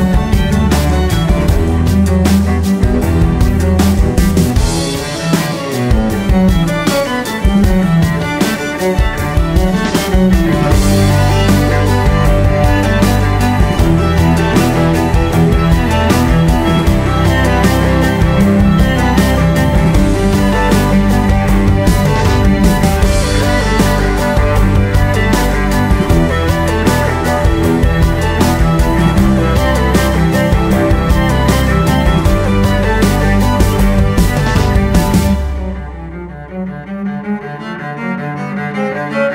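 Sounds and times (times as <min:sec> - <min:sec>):
violin playing a piece in G major: 0:00.0 - 0:39.3.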